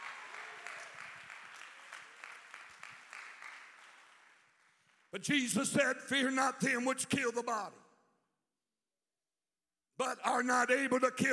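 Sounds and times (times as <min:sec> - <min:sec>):
audience clapping hands: 0:00.0 - 0:05.3
speech: 0:05.1 - 0:07.8, 0:10.4 - 0:11.3.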